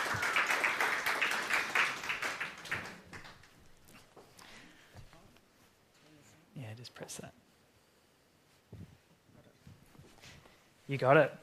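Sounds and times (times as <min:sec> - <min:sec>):
audience applause welcoming a guest speaker at a morning community care gathering: 0:00.0 - 0:04.2
speech: 0:06.8 - 0:07.4, 0:10.9 - 0:11.4.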